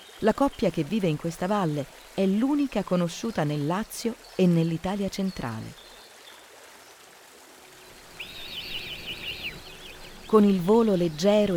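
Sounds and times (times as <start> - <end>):
speech: 0.2 - 5.8, 10.3 - 11.5
hoopoe calling at its nest in a large tree trunk: 8.0 - 11.5.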